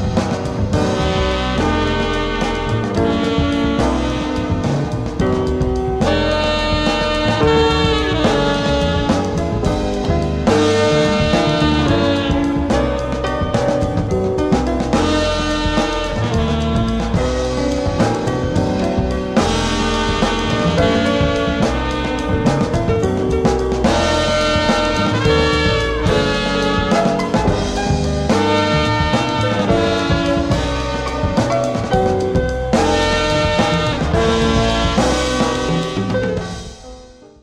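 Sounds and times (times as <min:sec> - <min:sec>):
ambient jazz music: 0:00.0 - 0:37.4.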